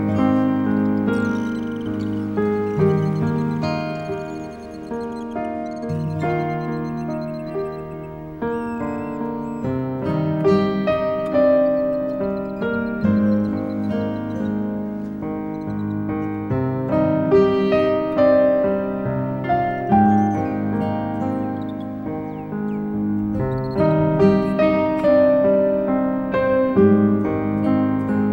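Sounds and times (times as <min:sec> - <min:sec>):
nature sounds: 0:00.0 - 0:28.3
piano: 0:00.0 - 0:28.3.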